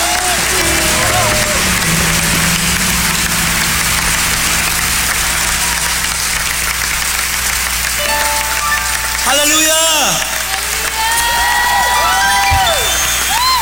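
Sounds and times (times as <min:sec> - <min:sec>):
church congregation applauding loudly for the Lord: 0:00.0 - 0:13.5.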